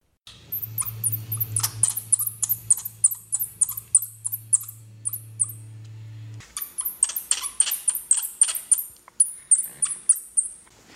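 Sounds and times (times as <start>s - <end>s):
low steady hum: 0.3s - 7.1s
Florida bonneted bat echolocation chirps: 0.5s - 5.6s, 6.6s - 10.6s.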